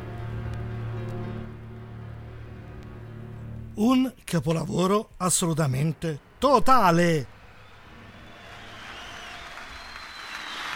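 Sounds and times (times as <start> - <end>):
speech: 3.8 - 7.4
applause at end of track: 8.0 - 10.7.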